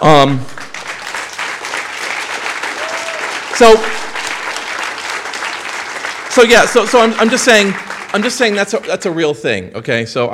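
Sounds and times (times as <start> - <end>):
speech: 0.0 - 0.6, 3.6 - 4.1, 6.4 - 10.3
audience clapping: 0.0 - 9.6
person shouting or cheering: 2.8 - 4.0.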